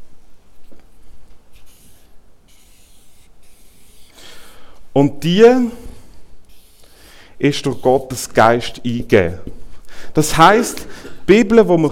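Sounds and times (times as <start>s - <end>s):
scratchy rubbing strokes drawing a picture of the Bible: 1.5s - 4.2s, 6.4s - 9.4s
speech: 5.0s - 5.8s, 7.4s - 11.9s.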